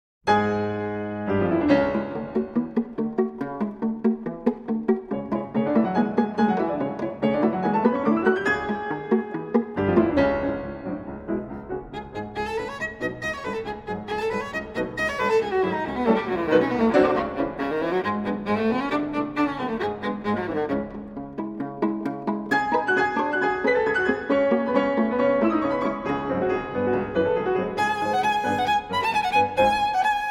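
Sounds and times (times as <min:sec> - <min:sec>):
viola and piano: 0:00.3 - 0:30.3.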